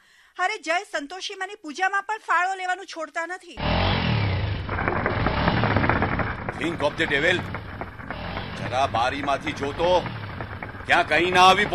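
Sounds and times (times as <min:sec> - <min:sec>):
speech: 0:00.4 - 0:04.0, 0:06.6 - 0:07.6, 0:08.6 - 0:10.2, 0:10.9 - 0:11.7
motorcycle engine revving loudly at a paan stall: 0:03.6 - 0:11.7.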